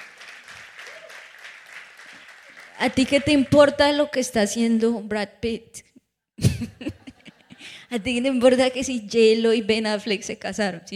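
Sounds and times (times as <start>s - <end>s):
person applauding: 0.0s - 3.5s
speech: 2.8s - 5.9s, 7.9s - 10.9s
laughter: 6.4s - 7.6s.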